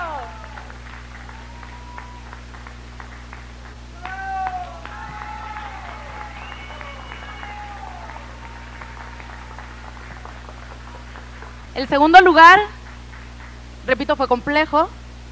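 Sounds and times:
people shouting: 0.0s - 2.3s, 4.0s - 9.8s
audience clapping for the third-place winner of a singer-songwriter contest: 0.0s - 14.4s
speech: 11.8s - 12.8s, 13.9s - 15.0s.

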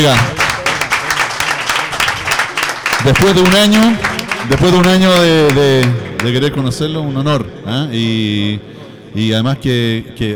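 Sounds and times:
speech: 0.0s - 0.4s, 3.0s - 10.3s
audience applause at a launch event: 0.0s - 6.7s.

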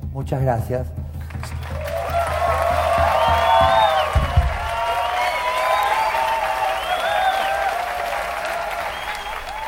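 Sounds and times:
speech: 0.2s - 1.0s
audience applause: 1.2s - 9.6s
faint whistle-like tones: 3.2s - 7.6s, 8.9s - 9.6s.

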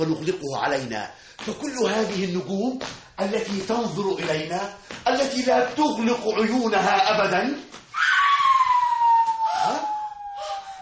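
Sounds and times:
speech: 0.0s - 7.8s
scream: 7.9s - 10.8s.

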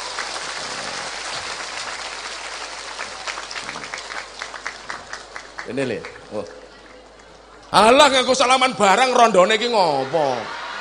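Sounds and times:
audience applause welcoming a new convert to Islam at a religious gathering: 0.0s - 7.6s
speech: 5.7s - 6.6s, 7.7s - 10.6s.

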